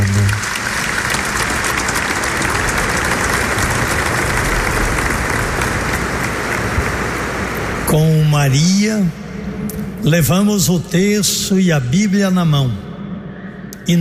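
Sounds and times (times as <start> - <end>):
audience applause: 0.0 - 7.5
speech: 7.9 - 9.2, 10.0 - 12.9.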